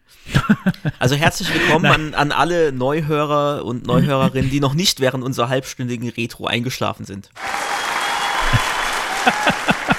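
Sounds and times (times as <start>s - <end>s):
laughter: 0.3s - 2.1s, 8.1s - 9.9s
speech: 0.5s - 7.5s
short burst of applause: 7.4s - 9.9s.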